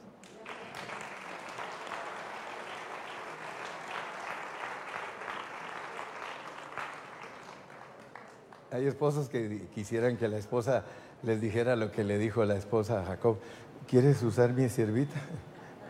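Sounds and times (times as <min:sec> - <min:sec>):
audience applause: 0:00.2 - 0:08.7
speech: 0:08.7 - 0:15.5.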